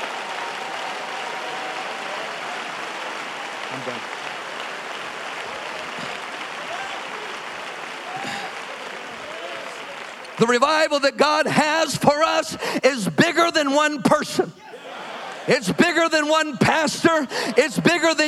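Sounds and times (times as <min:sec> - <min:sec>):
audience clapping hands: 0:00.0 - 0:12.7, 0:15.2 - 0:18.2
speech: 0:03.7 - 0:04.4, 0:10.4 - 0:14.6, 0:15.5 - 0:18.2.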